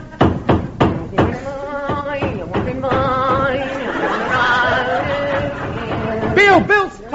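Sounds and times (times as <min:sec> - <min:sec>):
hammer banging tent pegs into the ground: 0:00.0 - 0:06.9
overlapping voices chattering and laughing: 0:03.0 - 0:07.1
speech: 0:06.4 - 0:07.1.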